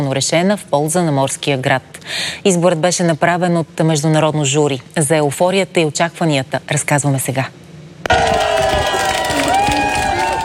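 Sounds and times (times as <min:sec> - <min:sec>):
speech: 0:00.1 - 0:08.4
crowd cheering and ovation: 0:08.0 - 0:10.4.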